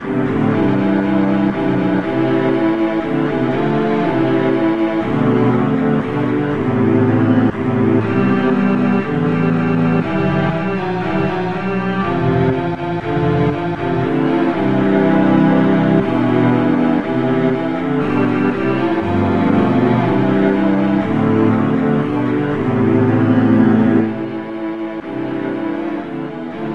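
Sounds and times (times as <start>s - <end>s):
national anthem music: 0.0s - 26.7s.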